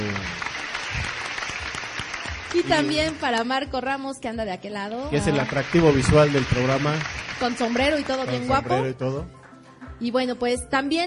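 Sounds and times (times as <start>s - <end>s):
audience applause: 0.0s - 3.4s, 5.2s - 8.7s
speech: 2.5s - 9.4s, 10.0s - 11.0s.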